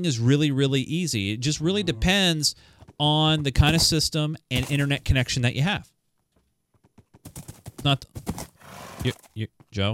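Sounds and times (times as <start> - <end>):
speech: 0.0 - 5.9, 7.2 - 9.9
Minecraft horse whinnying: 1.4 - 2.5, 8.6 - 9.1
other game sounds: 1.4 - 2.5.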